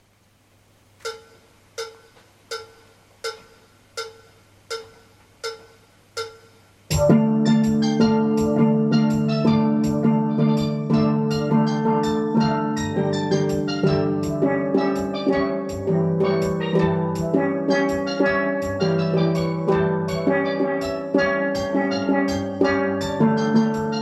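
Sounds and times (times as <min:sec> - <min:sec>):
guitar intros and refrains: 0:06.9 - 0:24.0.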